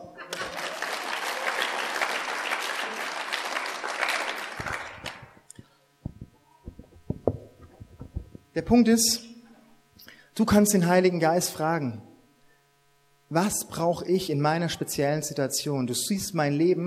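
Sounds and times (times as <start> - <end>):
applause: 0.3 - 5.4
speech: 8.6 - 9.3, 10.4 - 12.1, 13.3 - 16.8.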